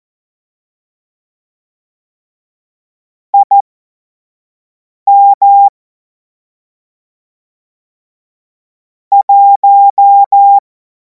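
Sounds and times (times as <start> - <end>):
Morse code course tones: 3.4 - 3.6, 5.1 - 5.7, 9.2 - 10.6.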